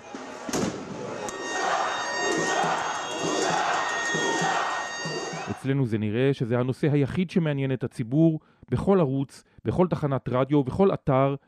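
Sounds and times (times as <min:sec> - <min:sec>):
protest crowd chanting in the streets: 0:00.0 - 0:05.6
steady shrill tones: 0:01.0 - 0:05.6
speech: 0:05.6 - 0:11.4.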